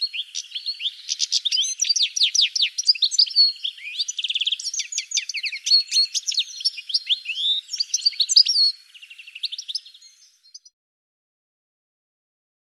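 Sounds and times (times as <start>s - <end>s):
bird chattering: 0.0s - 9.9s.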